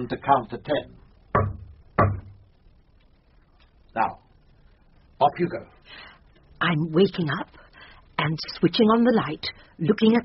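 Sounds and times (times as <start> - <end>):
speech: 0.0 - 1.0, 4.0 - 4.2, 5.2 - 7.6, 8.2 - 10.2
banging on a communicating door: 1.4 - 2.4.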